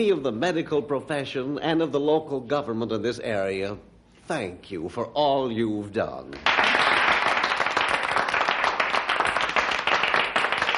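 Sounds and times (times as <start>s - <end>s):
speech: 0.0s - 6.6s
audience applause: 6.4s - 10.7s.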